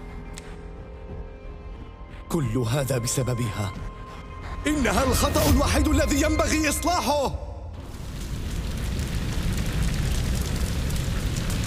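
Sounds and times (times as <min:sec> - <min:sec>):
speech: 0:02.3 - 0:03.9, 0:04.6 - 0:07.4
huge explosion: 0:07.8 - 0:11.6.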